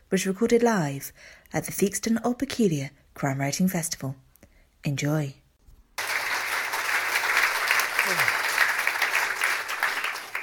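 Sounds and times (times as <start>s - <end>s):
speech: 0.1s - 4.2s, 4.8s - 5.4s
audience applause: 6.0s - 10.4s.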